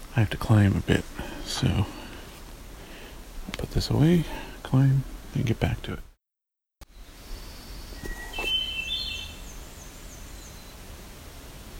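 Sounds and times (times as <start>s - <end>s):
speech: 0.2s - 2.0s, 3.5s - 6.1s
American Redstart singing: 6.9s - 10.8s.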